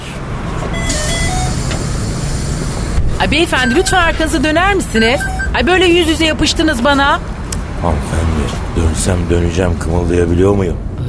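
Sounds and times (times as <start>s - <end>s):
bus engine idling: 0.0s - 11.0s
speech: 3.2s - 8.1s, 9.0s - 11.0s
electronic beep tone: 3.4s - 5.7s.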